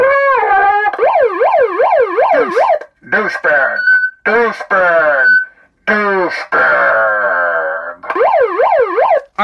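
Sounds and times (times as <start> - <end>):
electronic siren alarm sound effect: 0.0 - 2.9, 6.6 - 9.3
speech: 3.2 - 3.5, 4.2 - 5.3.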